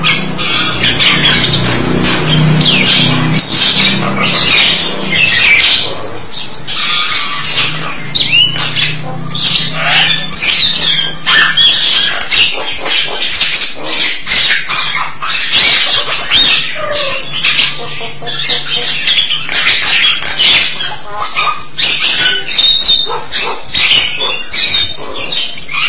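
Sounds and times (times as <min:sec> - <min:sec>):
starling song of squawks, chatter and whistles: 0:00.0 - 0:25.8.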